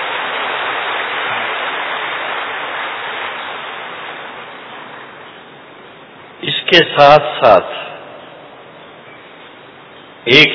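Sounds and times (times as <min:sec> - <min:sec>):
audience applause: 0:00.0 - 0:05.0
speech: 0:06.7 - 0:07.9, 0:10.3 - 0:10.5.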